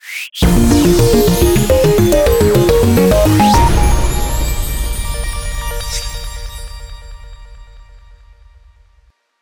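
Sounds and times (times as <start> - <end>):
winning jingle: 0.4 - 7.3.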